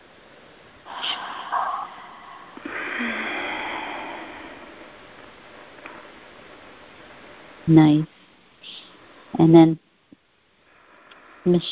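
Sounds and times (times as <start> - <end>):
deep breathing during a guided breathing exercise: 0.8 - 6.1, 10.6 - 11.5
speech: 7.7 - 8.8, 9.4 - 9.8, 11.4 - 11.7.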